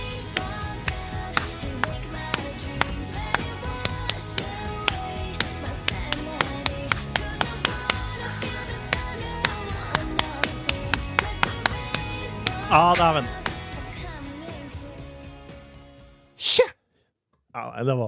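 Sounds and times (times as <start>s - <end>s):
hands clapping in time to a song: 0.1s - 13.8s
speech: 12.7s - 13.4s, 17.8s - 18.0s.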